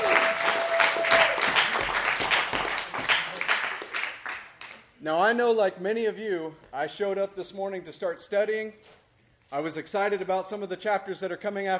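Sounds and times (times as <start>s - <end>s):
audience applause: 0.0s - 4.6s
speech: 5.0s - 11.7s.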